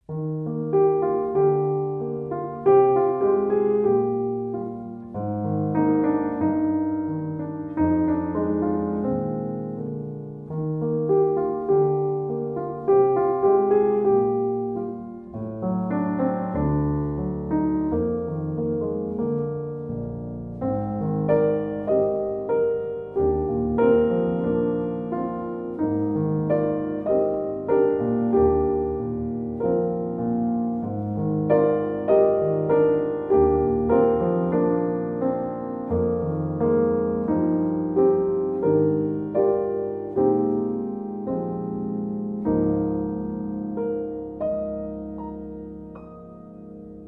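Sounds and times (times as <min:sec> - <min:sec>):
solo piano: 0:00.0 - 0:47.0.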